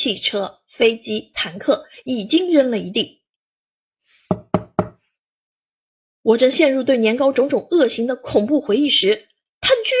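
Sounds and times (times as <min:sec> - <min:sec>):
speech: 0:00.0 - 0:03.2, 0:06.2 - 0:09.9
knocking and kicking on a door: 0:04.3 - 0:05.0.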